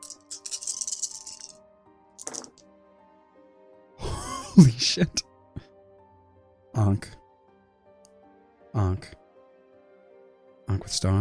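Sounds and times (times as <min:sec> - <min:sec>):
pool of seven dice rolling: 0:00.0 - 0:01.6, 0:02.2 - 0:02.6
speech: 0:04.6 - 0:05.2, 0:06.8 - 0:07.2, 0:11.0 - 0:11.1.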